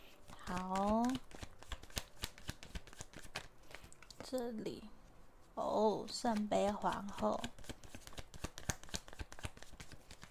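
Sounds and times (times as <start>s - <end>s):
tarot cards being shuffled: 0.1s - 4.4s, 6.1s - 10.3s
speech: 0.5s - 1.3s, 4.3s - 5.0s, 5.6s - 7.6s.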